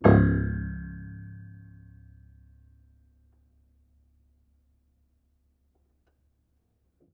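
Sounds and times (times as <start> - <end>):
low piano harmonics: 0.0 - 3.0.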